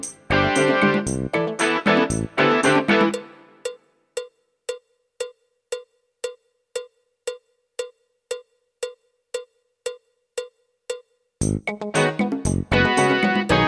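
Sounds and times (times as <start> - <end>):
medium rock music: 0.0 - 3.3, 11.4 - 13.6.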